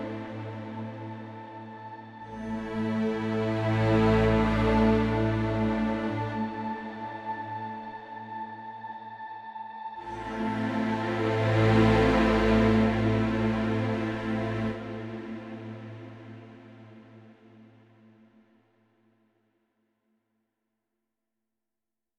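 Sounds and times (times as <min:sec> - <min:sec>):
cinematic underscore: 0:00.0 - 0:08.9, 0:10.0 - 0:17.7.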